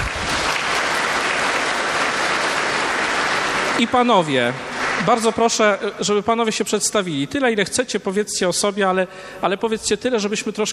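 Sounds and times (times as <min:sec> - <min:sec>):
audience applause: 0:00.0 - 0:05.8
speech: 0:03.8 - 0:10.7.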